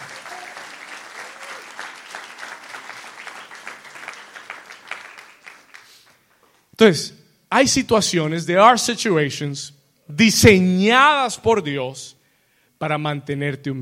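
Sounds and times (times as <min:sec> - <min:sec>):
loud audience applause: 0:00.0 - 0:06.4
speech: 0:06.8 - 0:12.2, 0:12.8 - 0:13.7.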